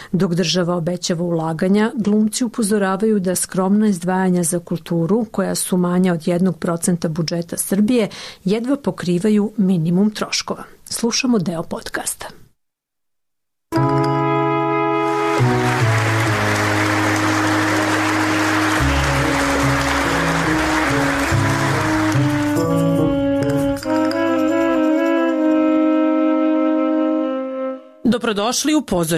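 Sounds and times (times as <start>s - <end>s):
speech: 0.1s - 12.4s, 28.2s - 29.1s
loud sustained music: 13.8s - 27.8s
theatre audience in Belgrade applauding actors after a premiere: 15.0s - 23.8s.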